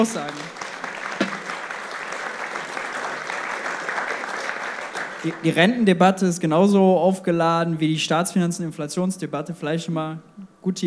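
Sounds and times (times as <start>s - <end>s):
speech: 0.0s - 0.6s, 5.2s - 10.8s
sustained audience applause: 0.0s - 5.6s.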